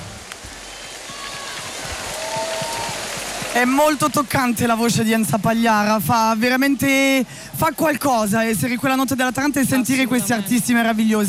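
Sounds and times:
crowd applauding after a song: 0.0 - 8.6
speech: 3.6 - 11.2.

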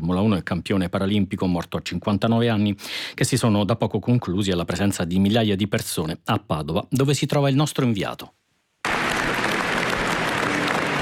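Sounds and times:
speech: 0.0 - 8.4
crowd applauding at a funeral in Padua as the coffin leaves the church: 8.8 - 11.0.

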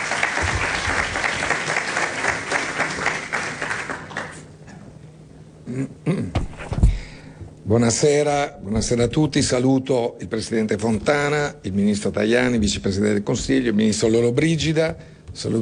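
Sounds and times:
crowd applause: 0.0 - 4.5
speech: 5.8 - 6.0, 7.7 - 15.6.

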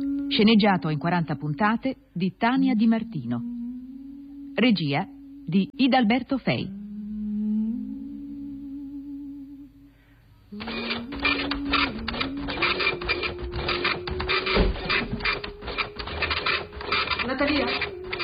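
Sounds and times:
speech: 0.3 - 3.6, 4.6 - 6.8
printer running: 10.6 - 18.2.

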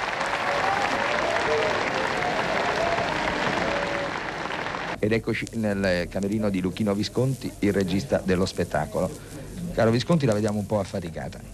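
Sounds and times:
theatre audience applause: 0.0 - 5.0
speech: 5.0 - 11.5.

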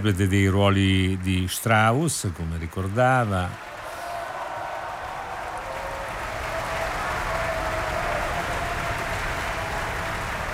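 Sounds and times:
speech: 0.0 - 3.7
concert audience applause: 0.0 - 10.5.

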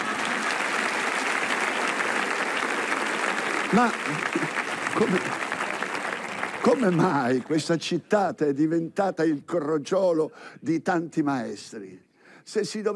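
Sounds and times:
audience applause: 0.0 - 7.8
speech: 3.7 - 5.5, 6.6 - 12.9.

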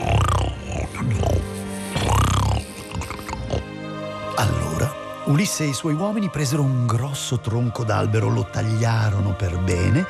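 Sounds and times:
giant snoring with deep rumbling snores: 0.0 - 3.8
speech: 5.3 - 10.0.

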